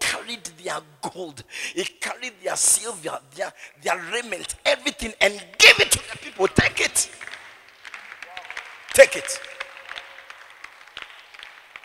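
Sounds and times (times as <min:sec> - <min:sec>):
speech: 0:00.3 - 0:07.3, 0:09.0 - 0:09.5
audience hand clapping: 0:06.0 - 0:11.8.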